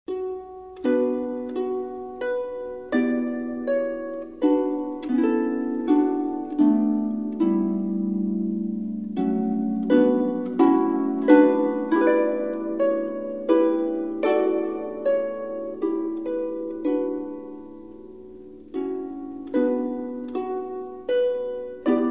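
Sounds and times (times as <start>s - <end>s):
Christmas string music: 0.1s - 22.0s.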